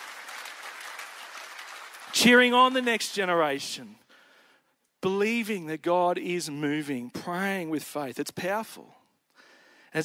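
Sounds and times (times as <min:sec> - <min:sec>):
audience applause: 0:00.0 - 0:02.5
speech: 0:02.2 - 0:04.0, 0:05.0 - 0:09.0.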